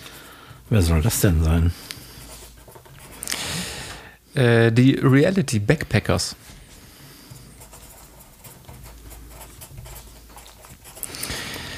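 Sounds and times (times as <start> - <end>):
pen scratching on paper writing notes: 0.0 - 3.3, 7.1 - 11.2
speech: 0.7 - 2.0, 4.4 - 6.6.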